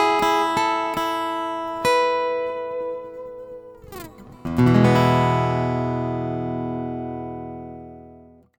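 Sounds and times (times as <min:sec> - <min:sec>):
acoustic guitar with reverb: 0:00.0 - 0:08.5.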